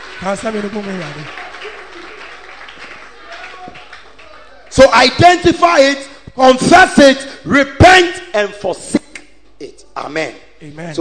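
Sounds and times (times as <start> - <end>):
audience clapping hands: 0.0 - 5.2
speech: 0.2 - 1.4, 4.8 - 9.0, 9.6 - 10.9.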